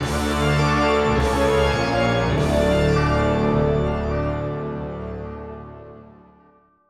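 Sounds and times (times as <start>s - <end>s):
fanfare: 0.0s - 6.4s.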